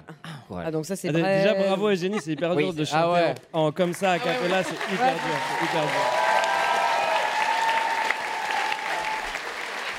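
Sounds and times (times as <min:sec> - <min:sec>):
speech: 0:00.5 - 0:06.2
studio audience applause on a French television show: 0:03.8 - 0:09.9.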